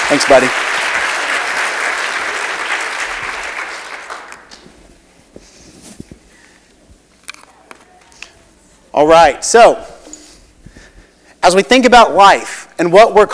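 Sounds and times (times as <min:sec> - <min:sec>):
audience applause: 0:00.0 - 0:04.5
speech: 0:00.1 - 0:00.9, 0:09.0 - 0:09.9, 0:11.5 - 0:13.3.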